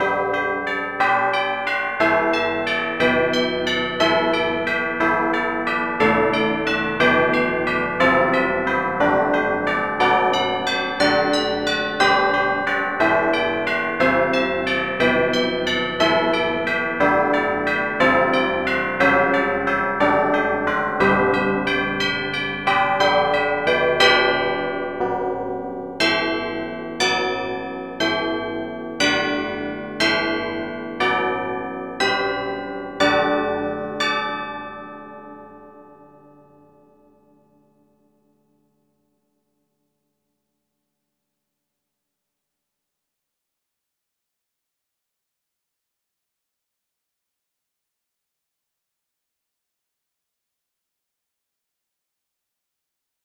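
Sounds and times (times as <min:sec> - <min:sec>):
tubular bells: 0:00.0 - 0:35.4.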